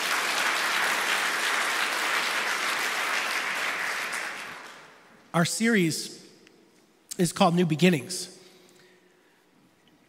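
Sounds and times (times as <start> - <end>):
audience applause: 0.0 - 5.0
speech: 5.3 - 6.2, 7.2 - 8.4.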